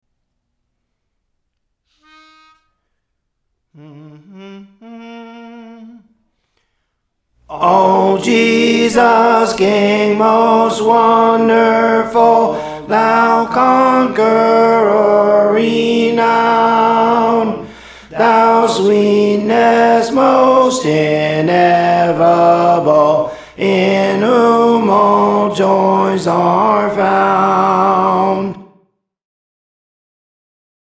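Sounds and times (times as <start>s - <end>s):
tenor singing songs: 3.8s - 6.2s, 7.4s - 28.6s.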